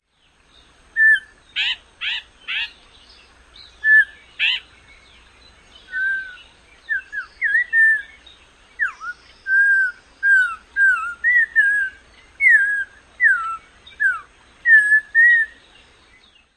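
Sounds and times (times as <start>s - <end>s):
Audubon's Oriole calls and song: 0.1s - 16.5s.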